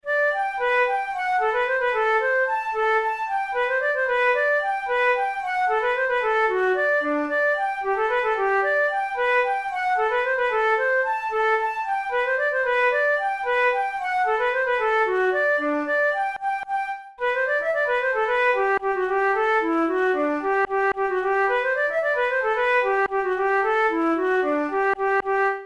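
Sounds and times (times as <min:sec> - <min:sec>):
flute playing a polka: 0:00.0 - 0:25.6.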